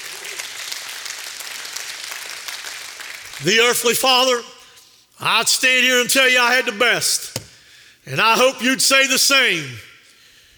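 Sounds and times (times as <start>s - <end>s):
audience clapping hands in praise: 0.0s - 3.9s
speech: 3.4s - 4.5s, 5.2s - 7.4s, 8.0s - 9.9s.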